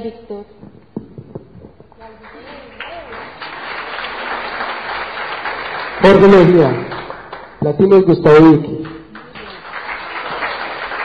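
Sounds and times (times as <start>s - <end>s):
speech: 0.0s - 0.9s, 6.0s - 7.0s, 7.6s - 8.8s
applause: 2.2s - 11.0s.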